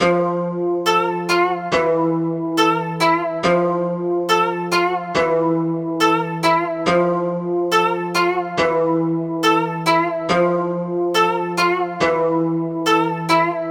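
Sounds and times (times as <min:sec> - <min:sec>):
koto loop: 0:00.0 - 0:13.6.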